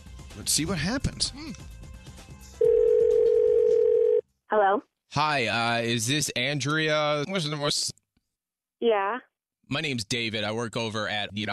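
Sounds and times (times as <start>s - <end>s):
speech: 0.4s - 1.8s, 4.5s - 8.0s, 8.8s - 11.5s
outgoing phone call ringing tone: 2.6s - 4.2s.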